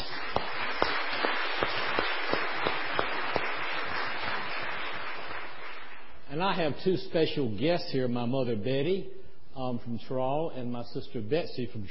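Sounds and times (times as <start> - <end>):
audience applause: 0.0 - 6.1
speech: 6.4 - 11.8.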